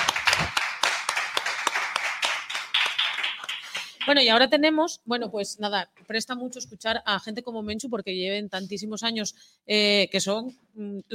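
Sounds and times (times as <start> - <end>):
audience applause: 0.0 - 4.1
speech: 4.1 - 11.1.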